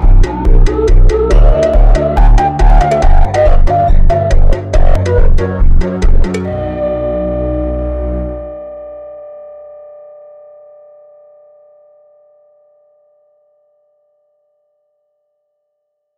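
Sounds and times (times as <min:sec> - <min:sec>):
funk music: 0:00.0 - 0:08.7.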